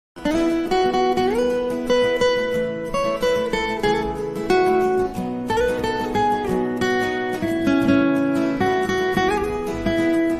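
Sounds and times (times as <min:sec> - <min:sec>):
Hindu devotional hymn played on guitar: 0:00.2 - 0:10.3.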